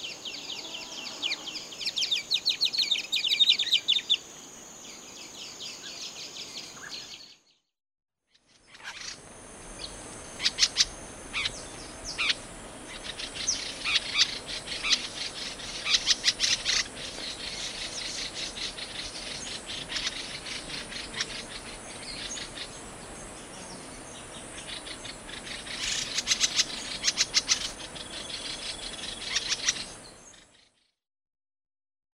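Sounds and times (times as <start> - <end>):
bird song of rapid high-pitched chirping notes in Papua New Guinea: 0.0 - 7.7, 8.3 - 31.0.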